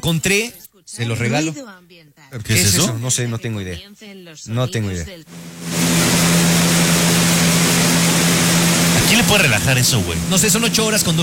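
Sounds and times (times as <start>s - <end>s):
speech: 0.0s - 6.0s, 9.1s - 11.2s
industrial fan noise for sleeping: 5.3s - 11.2s.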